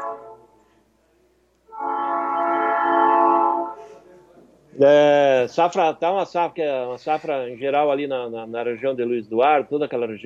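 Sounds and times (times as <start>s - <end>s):
horn of a loaded freight train carrying bran in Bahia: 0.0s - 0.6s, 1.7s - 4.0s
speech: 4.8s - 10.2s.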